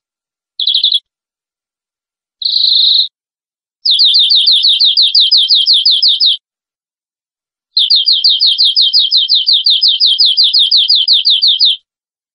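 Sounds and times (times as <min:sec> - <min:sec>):
canary trilling: 0:00.6 - 0:01.0, 0:02.4 - 0:03.1, 0:03.8 - 0:06.4, 0:07.8 - 0:11.8.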